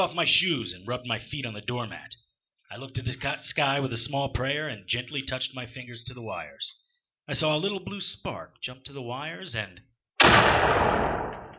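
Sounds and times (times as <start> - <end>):
speech: 0.0 - 11.1
explosive blast: 10.2 - 11.5.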